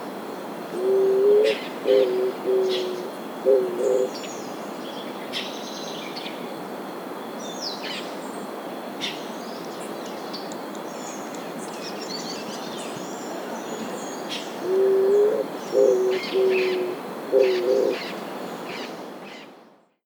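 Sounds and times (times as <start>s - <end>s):
Eared Dove Zenaida auriculata calling: 0.8s - 4.2s, 14.2s - 18.2s.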